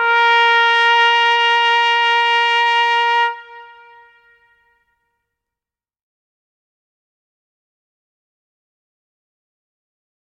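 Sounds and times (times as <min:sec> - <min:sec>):
trumpet call: 0:00.0 - 0:05.0.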